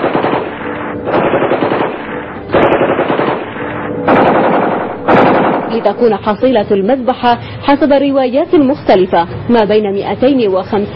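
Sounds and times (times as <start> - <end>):
automatic gunfire: 0.0 - 6.1
speech: 5.8 - 10.9.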